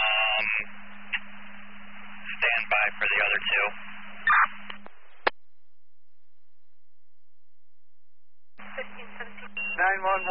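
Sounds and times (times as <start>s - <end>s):
steady low hum: 0.0s - 10.3s
speech: 3.2s - 3.9s
fire dispatch alert tone: 8.7s - 10.3s.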